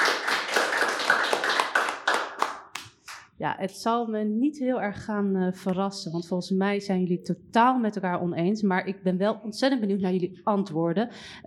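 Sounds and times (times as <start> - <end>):
audience applause: 0.0 - 2.8
speech: 3.4 - 11.4.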